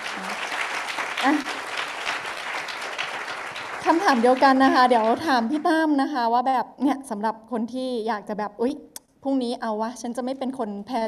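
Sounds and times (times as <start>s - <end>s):
audience applause: 0.0s - 5.8s
speech: 1.2s - 1.6s, 3.9s - 11.0s.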